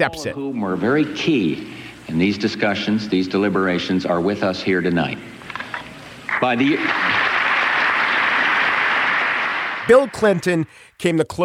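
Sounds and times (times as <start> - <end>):
speech: 0.0 - 5.4, 6.4 - 7.1, 9.9 - 11.4
crowd applause: 6.3 - 10.7.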